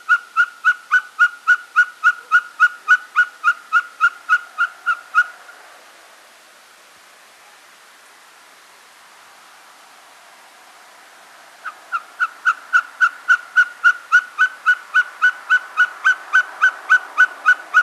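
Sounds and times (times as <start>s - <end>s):
Mochuelo patagon Glaucidium nana call: 0.0s - 5.5s, 11.6s - 17.8s.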